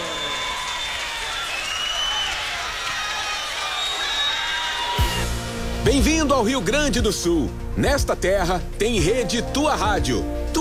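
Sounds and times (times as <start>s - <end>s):
audience applauding and cheering as a performer is welcomed on stage: 0.0s - 5.8s
speech: 6.0s - 10.5s.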